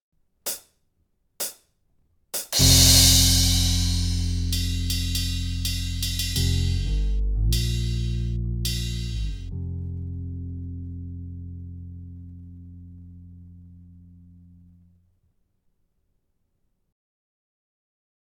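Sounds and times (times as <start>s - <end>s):
band jamming without lead guitar: 2.5s - 9.5s.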